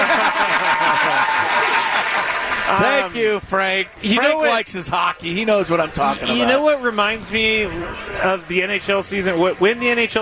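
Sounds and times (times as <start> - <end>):
crowd chuckling: 0.0 - 2.8
loud audience applause at Baja during a live sports talk show: 0.0 - 4.2
scattered voices from the crowd: 2.6 - 10.2
speech: 2.8 - 10.2.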